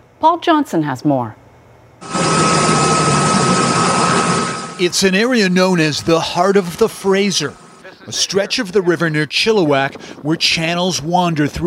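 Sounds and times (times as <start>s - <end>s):
speech: 0.2s - 1.4s, 4.8s - 11.6s
helicopter flying: 2.0s - 8.6s.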